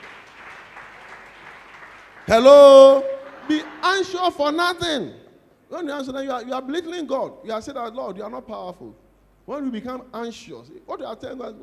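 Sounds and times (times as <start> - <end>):
audience clapping hands: 0.0 - 4.2
speech: 2.3 - 11.6.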